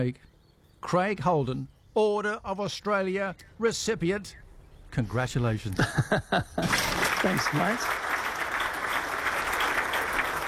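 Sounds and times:
speech: 0.0s - 8.0s
laughter: 5.7s - 7.4s
studio audience applause: 6.7s - 10.4s.

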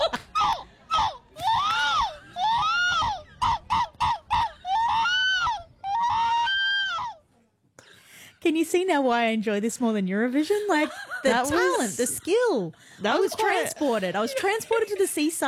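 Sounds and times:
laughter: 0.0s - 0.6s, 1.4s - 5.3s, 10.5s - 15.4s
person imitating seagull cries: 0.4s - 7.2s
speech: 8.5s - 15.4s.

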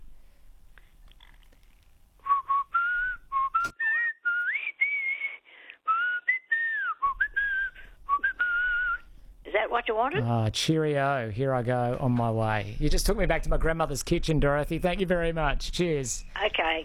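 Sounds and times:
lively whistled tune: 2.2s - 9.1s
speech: 9.6s - 16.8s.

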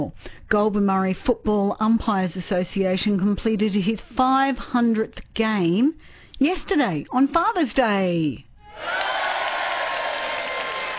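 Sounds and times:
speech: 0.0s - 9.0s
crowd cheering and applause sound effect: 8.6s - 10.9s.

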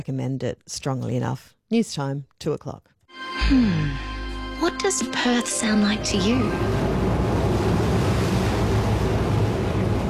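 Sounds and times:
speech: 0.0s - 7.3s
waves on a ferry ride: 5.9s - 10.0s
wind on a ferry ride: 6.5s - 10.0s.

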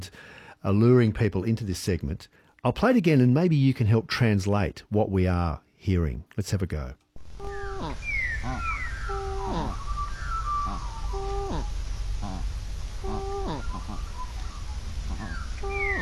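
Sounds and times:
speech: 0.0s - 7.0s
two birds calling together: 7.2s - 16.0s.

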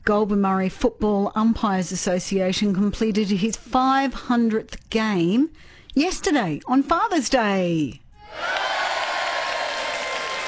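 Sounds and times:
speech: 0.0s - 8.6s
crowd cheering sound effect: 8.2s - 10.4s.

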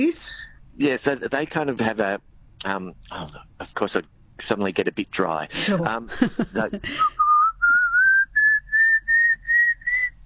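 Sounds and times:
speech: 0.0s - 7.2s
laughter: 5.5s - 7.2s
person whistling imitation of pallid cuckoo call: 7.0s - 10.2s.

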